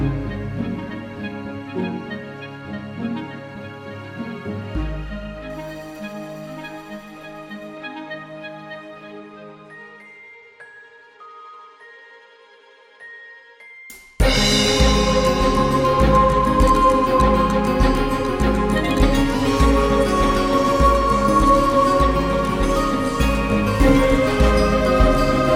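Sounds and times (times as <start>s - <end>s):
uplifting strings: 0.0s - 10.8s, 12.3s - 25.5s
uplifting guitar: 14.2s - 25.5s.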